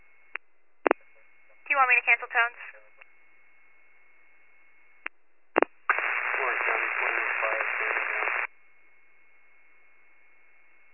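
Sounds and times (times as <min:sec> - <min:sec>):
radio static: 0:00.9 - 0:03.0, 0:05.6 - 0:08.5
speech: 0:01.8 - 0:02.8.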